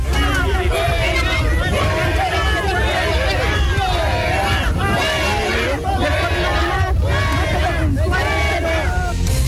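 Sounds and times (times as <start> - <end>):
crowd shouting at a visiting president: 0.0 - 9.3.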